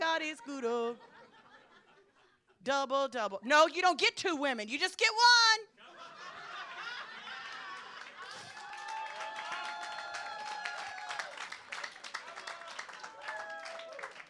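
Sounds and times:
speech: 0.2s - 1.1s, 2.7s - 5.8s
laughter: 0.4s - 2.6s, 5.7s - 9.0s, 12.1s - 13.2s
audience clapping: 7.0s - 14.2s.

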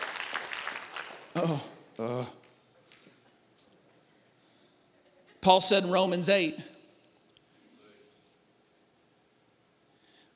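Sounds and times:
audience clapping: 0.0s - 3.1s
speech: 1.4s - 2.4s, 5.4s - 6.8s.

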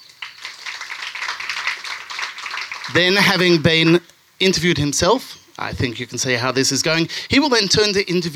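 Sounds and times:
crowd applauding: 0.0s - 3.9s
speech: 2.9s - 8.3s.

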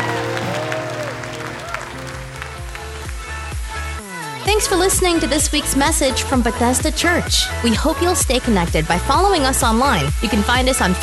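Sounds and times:
large audience clapping and cheering in a standing ovation: 0.0s - 4.4s
keyboard or organ music with a stepping bass line: 0.0s - 11.0s
speech: 4.6s - 11.0s.

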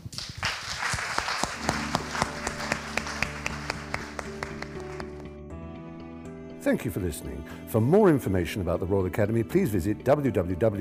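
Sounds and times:
audience applause: 0.0s - 5.3s
tonal music with a regular percussive beat: 1.5s - 4.8s
speech: 6.7s - 10.7s.

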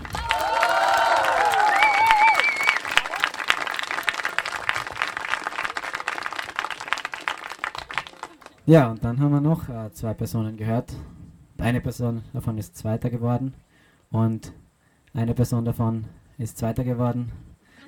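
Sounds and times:
audience applause: 0.0s - 8.7s
speech: 8.7s - 17.5s.

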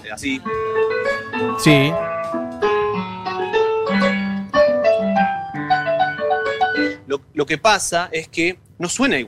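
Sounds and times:
speech: 0.0s - 2.0s, 7.4s - 9.2s
piano track at original speed: 0.2s - 7.1s.

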